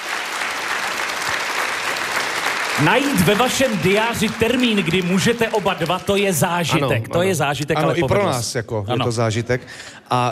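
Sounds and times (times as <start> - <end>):
applause for guests: 0.0 - 7.0
speech: 2.8 - 10.3.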